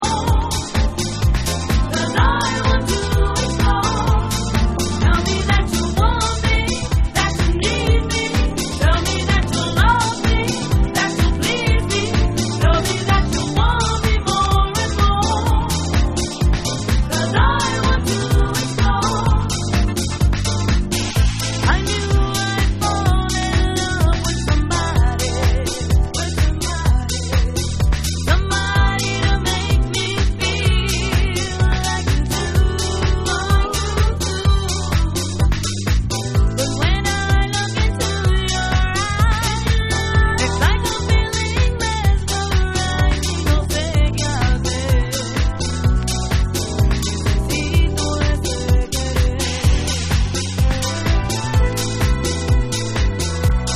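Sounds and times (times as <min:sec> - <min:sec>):
dub vocal: 0:00.0 - 0:53.6.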